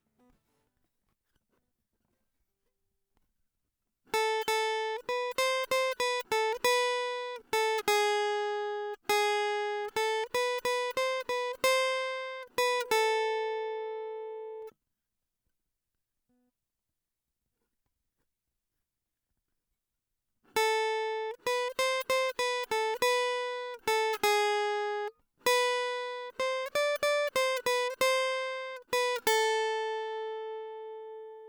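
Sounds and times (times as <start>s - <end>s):
guitar: 4.1s - 14.7s, 20.5s - 31.4s.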